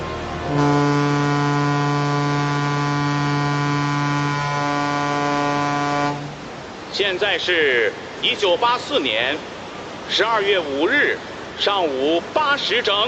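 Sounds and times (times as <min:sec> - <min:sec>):
ship horn of Xiangyanghong 10 and J-211: 0:00.0 - 0:06.4
speech: 0:07.0 - 0:09.5, 0:10.1 - 0:13.0.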